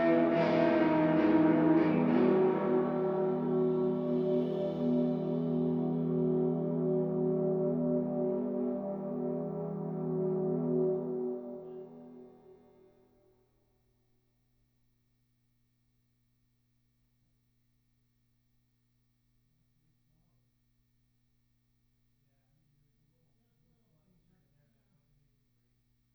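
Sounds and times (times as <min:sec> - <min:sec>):
guitar: 0:00.0 - 0:12.4.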